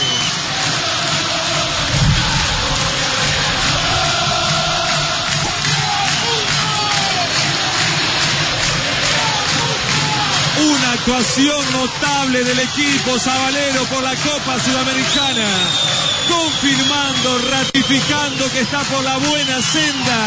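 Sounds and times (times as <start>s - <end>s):
massive stadium crowd roaring for the players: 0.0s - 20.2s
speech: 11.1s - 20.2s.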